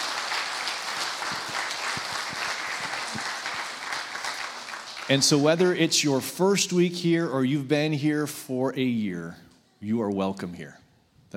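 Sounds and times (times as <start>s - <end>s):
audience applauding: 0.0s - 5.8s
speech: 5.1s - 11.3s.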